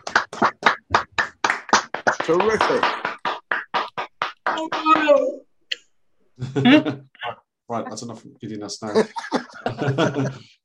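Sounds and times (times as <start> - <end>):
online audience round of applause: 0.0 - 5.3
speech: 2.3 - 3.0, 4.6 - 5.4, 6.5 - 7.1, 7.7 - 10.5
laughter: 8.8 - 10.5.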